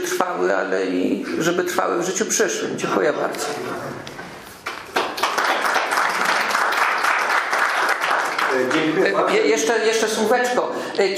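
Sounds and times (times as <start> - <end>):
speech: 0.2 - 4.2, 8.6 - 11.1
audience applause: 4.6 - 9.1.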